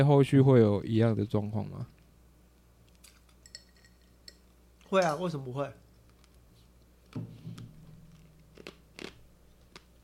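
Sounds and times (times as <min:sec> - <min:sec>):
speech: 0:00.0 - 0:02.0, 0:04.9 - 0:05.8, 0:07.1 - 0:07.4
low steady hum: 0:00.0 - 0:10.0
biting and chewing ice cubes: 0:08.1 - 0:09.9.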